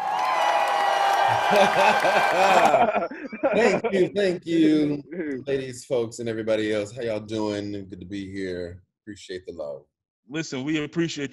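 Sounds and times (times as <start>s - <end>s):
cued applause: 0.0s - 3.0s
laughter: 1.2s - 6.0s
speech: 1.3s - 11.3s.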